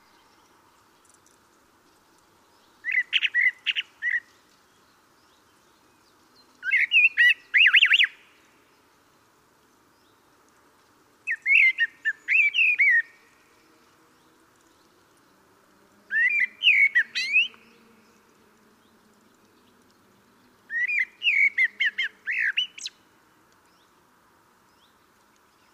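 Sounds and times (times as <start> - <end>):
common blackbird Turdus merula singing: 2.8 - 4.3, 6.6 - 8.2, 11.3 - 13.2, 16.1 - 17.7, 20.7 - 23.0.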